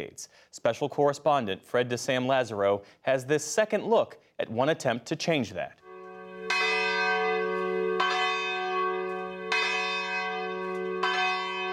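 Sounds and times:
speech: 0:00.0 - 0:05.8
church bells ringing: 0:05.8 - 0:11.7.

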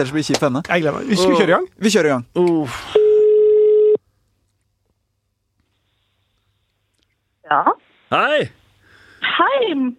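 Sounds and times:
speech: 0:00.0 - 0:03.0, 0:07.5 - 0:08.6, 0:09.4 - 0:09.9
telephone ringback tone from an outgoing call: 0:03.0 - 0:04.0.

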